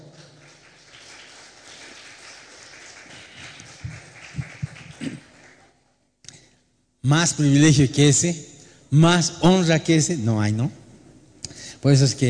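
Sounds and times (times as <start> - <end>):
crowd applause: 0.0 - 5.8
speech: 7.1 - 10.8, 11.8 - 12.2.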